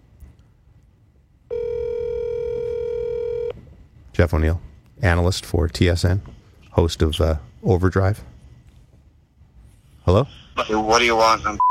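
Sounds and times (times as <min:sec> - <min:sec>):
brief quiet hiss: 0:00.0 - 0:11.6
loud steady buzzy telephone tone: 0:01.5 - 0:03.6
speech: 0:04.2 - 0:08.3, 0:10.1 - 0:11.6.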